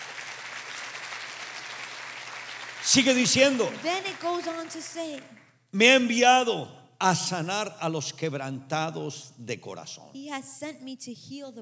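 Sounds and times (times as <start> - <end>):
church congregation applause: 0.0 - 5.6
speech: 2.8 - 11.6.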